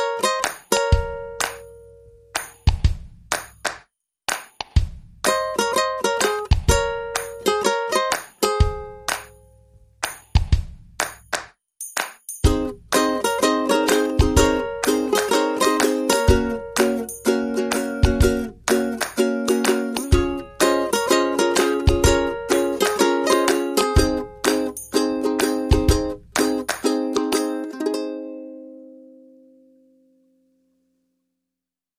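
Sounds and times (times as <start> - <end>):
ukuleles: 0.0 - 1.8, 5.3 - 9.4, 12.5 - 29.9
drums: 0.4 - 1.6, 2.4 - 7.4, 8.1 - 9.3, 10.0 - 27.5.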